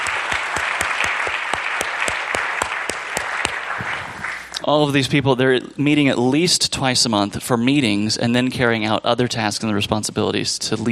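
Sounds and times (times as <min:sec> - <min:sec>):
audience applause: 0:00.0 - 0:04.6
speech: 0:04.7 - 0:10.9.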